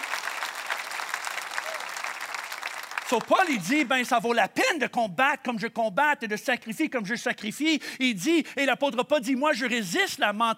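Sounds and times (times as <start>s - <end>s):
congregation applause in a church: 0.0s - 3.9s
speech: 3.1s - 10.5s.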